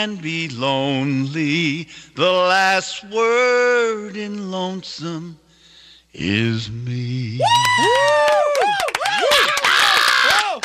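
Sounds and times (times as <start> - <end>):
speech: 0.0 - 5.4, 6.1 - 9.6
audience cheering and yelling encore: 7.4 - 10.6.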